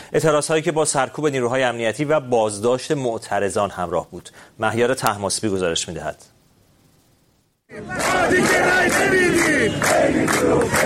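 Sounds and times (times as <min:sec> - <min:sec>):
speech: 0:00.1 - 0:06.4, 0:07.7 - 0:10.8
workers and retirees chanting at a protest gathering in Mashhad: 0:07.7 - 0:10.8.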